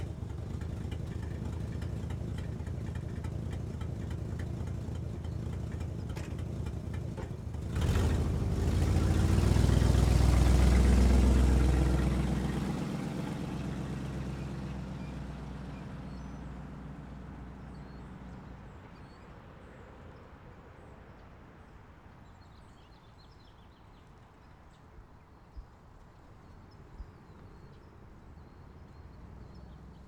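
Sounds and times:
1964 Mercury Montclair car driving, starting, idling and stopping: 0.0 - 20.1, 27.3 - 30.0.

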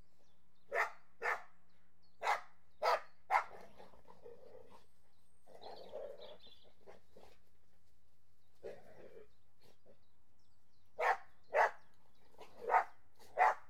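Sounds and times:
Border Collies and Labradors barking while playing: 0.7 - 1.5, 2.2 - 3.6, 11.0 - 11.8, 12.4 - 13.6.

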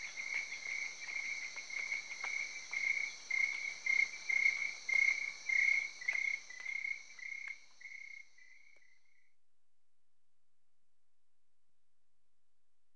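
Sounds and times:
crickets chirping in Cameroon: 0.0 - 9.3.

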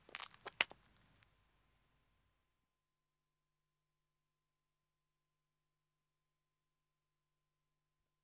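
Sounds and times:
woman running footsteps on a country road: 0.0 - 1.2.

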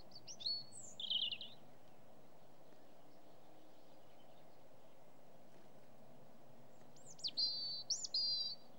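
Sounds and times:
European robin song with high thin warbling phrases: 0.2 - 1.6, 7.0 - 8.6.

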